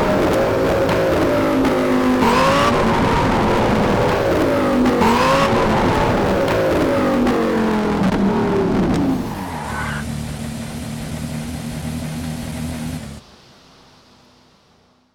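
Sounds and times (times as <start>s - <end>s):
2003 Porsche Carrera GT 980: 0.0s - 13.4s.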